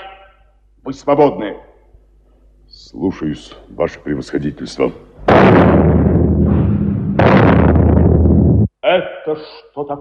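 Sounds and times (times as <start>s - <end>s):
speech: 0.9s - 1.7s, 2.8s - 6.0s, 8.9s - 9.9s
artillery blast: 5.3s - 8.7s.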